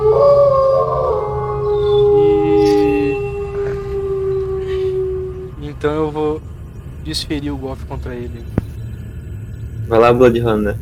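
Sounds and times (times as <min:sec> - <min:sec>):
wolf howling: 0:00.0 - 0:06.4
speech: 0:07.1 - 0:08.6, 0:09.9 - 0:10.8.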